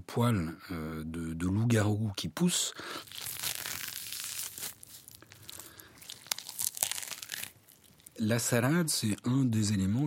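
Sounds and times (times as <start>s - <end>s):
speech: 0.1s - 3.3s, 8.2s - 10.0s
grapefruit peel being torn: 3.0s - 8.2s.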